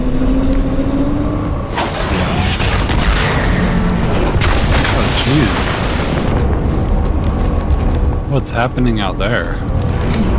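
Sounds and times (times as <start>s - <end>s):
steady in-game noise: 0.0s - 10.3s
grenade explosion in a video game: 1.7s - 8.3s
speech: 8.4s - 10.3s.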